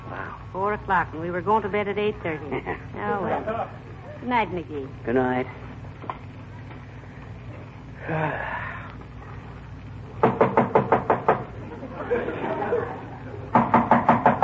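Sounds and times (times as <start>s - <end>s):
low steady hum: 0.0s - 14.4s
speech: 0.5s - 5.7s, 8.0s - 8.6s, 12.1s - 13.0s
laughter: 2.5s - 4.2s, 11.6s - 13.5s
knocking on a door at night: 10.2s - 11.5s, 13.5s - 14.4s.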